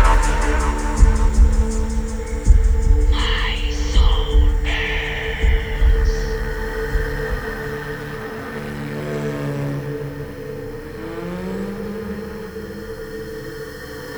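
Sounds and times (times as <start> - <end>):
ambience sub low mix: 0.0 - 9.0.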